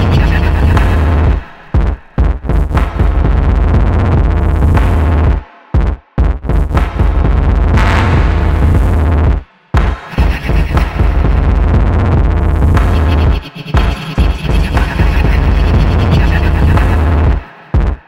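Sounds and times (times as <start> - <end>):
experimental music made from bass drum grains: 0.0 - 18.0.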